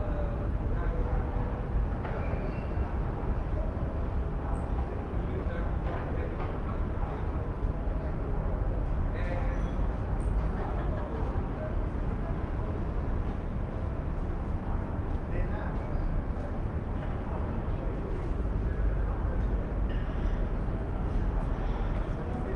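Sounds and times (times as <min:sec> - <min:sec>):
rooftop night ambience in Athens: 0:00.0 - 0:22.5.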